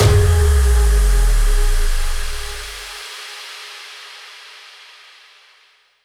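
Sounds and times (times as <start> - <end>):
impact: 0.0 - 2.9.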